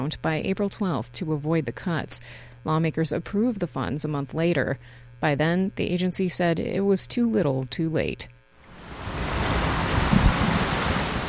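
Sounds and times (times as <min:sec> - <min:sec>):
speech: 0:00.0 - 0:08.4
water flowing into a concrete tank: 0:08.6 - 0:11.2.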